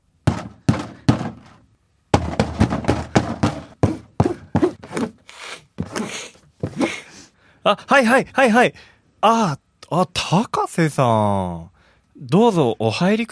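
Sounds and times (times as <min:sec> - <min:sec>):
knocking on a wooden door: 0:00.2 - 0:05.1
speech: 0:07.7 - 0:13.3.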